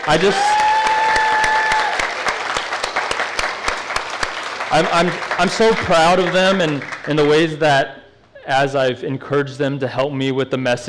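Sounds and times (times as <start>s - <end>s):
speech: 0.0s - 0.6s, 4.7s - 10.8s
brief sustained vocal cheer: 0.0s - 2.1s
church congregation clapping for a band: 0.0s - 7.6s.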